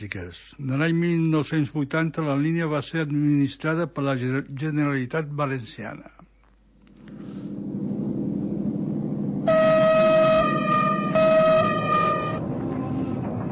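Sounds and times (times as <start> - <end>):
speech: 0.0 - 6.2
train rumbling: 7.1 - 13.5
electric locomotive horn: 9.4 - 13.3.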